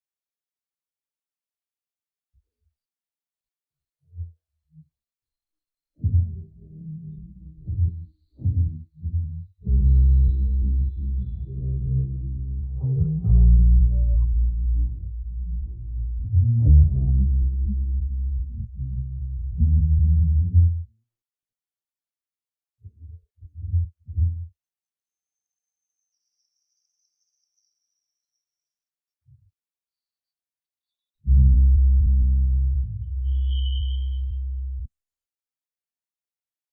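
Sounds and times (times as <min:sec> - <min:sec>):
bass: 0:06.0 - 0:20.9, 0:23.0 - 0:24.5, 0:31.2 - 0:34.9.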